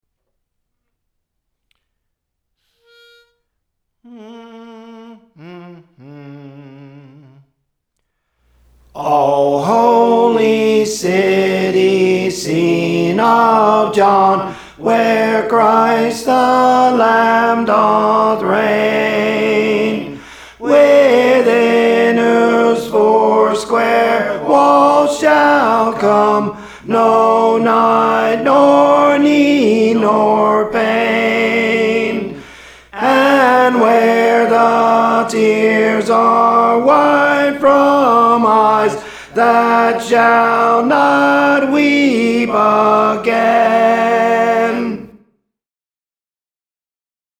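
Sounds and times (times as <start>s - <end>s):
tenor singing songs: 8.6s - 45.2s.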